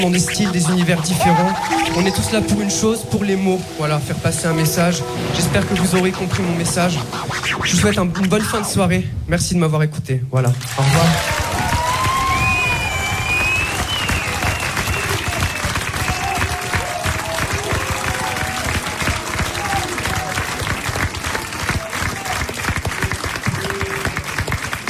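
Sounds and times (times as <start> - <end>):
speech: 0.0 - 11.4
audience applause: 10.6 - 24.8.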